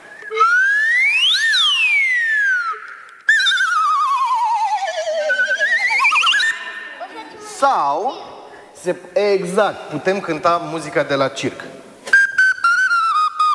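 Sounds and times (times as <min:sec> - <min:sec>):
slide whistle glissando: 0:00.0 - 0:07.5, 0:12.1 - 0:13.5
speech: 0:07.6 - 0:11.7.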